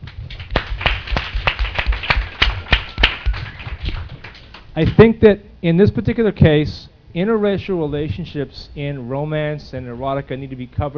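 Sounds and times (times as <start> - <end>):
audience applause: 0.3 - 4.5
speech: 4.8 - 10.9.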